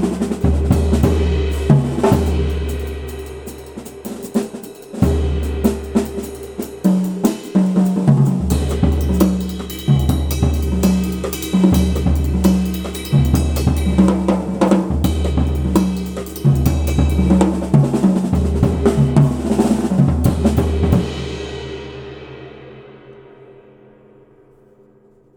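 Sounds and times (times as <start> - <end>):
Zildjian K Custom Hi Def ride cymbal: 0.0 - 21.9.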